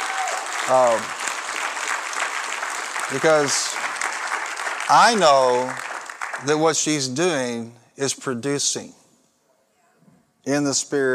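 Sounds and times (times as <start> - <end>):
audience hand clapping: 0.0 - 7.1
speech: 0.7 - 1.2, 3.1 - 3.8, 4.9 - 5.8, 6.4 - 9.0, 10.4 - 11.1.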